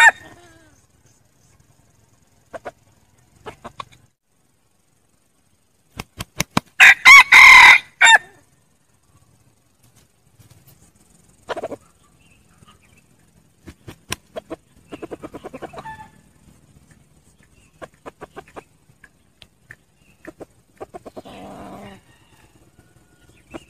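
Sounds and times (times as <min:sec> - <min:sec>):
red junglefowl crowing: 0:00.0 - 0:00.6, 0:06.8 - 0:08.4, 0:21.2 - 0:23.6.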